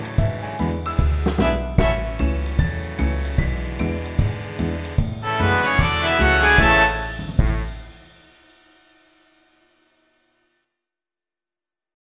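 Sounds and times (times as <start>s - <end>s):
backing music: 0.0s - 8.5s.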